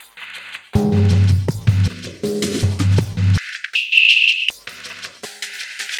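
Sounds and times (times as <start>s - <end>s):
music loop: 0.8s - 3.4s.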